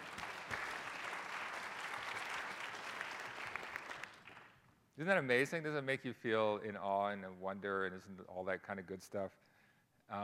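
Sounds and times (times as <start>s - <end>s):
audience applause: 0.0s - 4.5s
speech: 5.0s - 9.5s, 10.1s - 10.2s.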